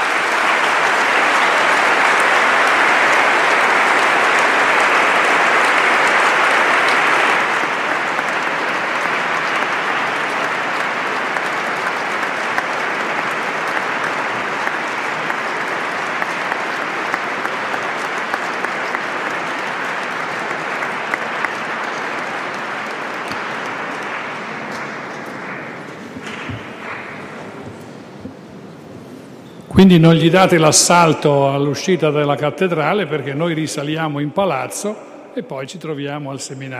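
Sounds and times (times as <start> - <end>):
audience applause: 0.0 - 29.0
speech: 29.8 - 36.7.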